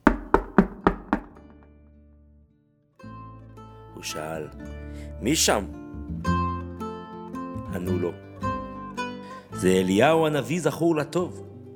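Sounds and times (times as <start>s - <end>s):
firm knocks on a wooden door: 0.0s - 1.7s
speech: 4.0s - 5.8s, 7.8s - 8.3s, 9.6s - 11.4s.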